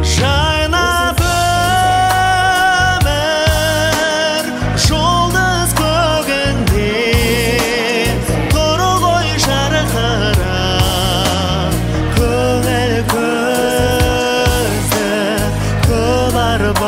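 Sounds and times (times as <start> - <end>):
Kazakh vocal singing: 0.0 - 16.8.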